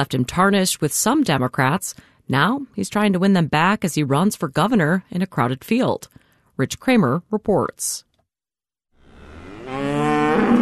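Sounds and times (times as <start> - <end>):
speech: 0.0 - 8.1
dairy cattle mooing at the Riverview Dairy Farm in Chippewa County: 9.0 - 10.5.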